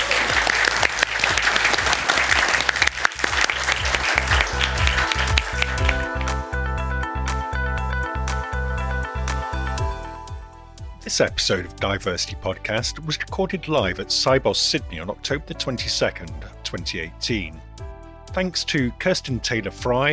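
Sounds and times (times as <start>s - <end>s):
audience applause at the Swift Institute room at Cybos in Sydney: 0.0s - 6.7s
rhythmic tonal backing: 0.0s - 20.1s
speech: 11.1s - 17.7s, 18.3s - 20.1s.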